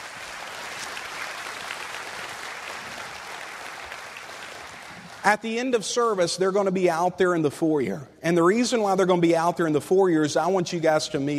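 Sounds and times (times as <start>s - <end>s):
church congregation applauding to welcome guests at Word of Life: 0.0s - 5.8s
speech: 5.2s - 11.3s.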